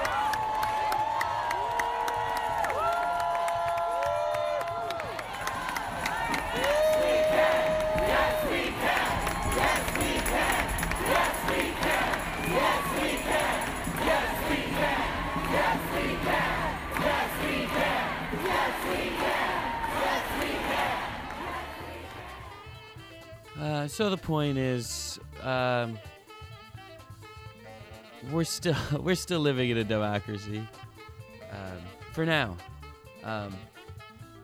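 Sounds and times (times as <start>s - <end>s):
long rising yells: 0.0s - 22.6s
large crowd cheering: 0.0s - 22.8s
speech: 24.0s - 26.1s, 28.3s - 30.8s, 32.2s - 33.7s.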